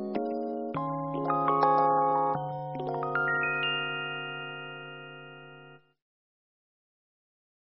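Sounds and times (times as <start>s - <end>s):
Japanese children's song with jazzy chord progression: 0.1s - 4.7s.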